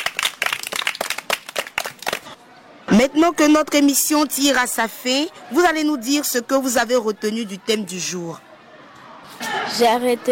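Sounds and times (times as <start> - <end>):
audience of children applauding on a kids' show: 0.0 - 2.4
speech: 3.0 - 8.5, 9.8 - 10.2.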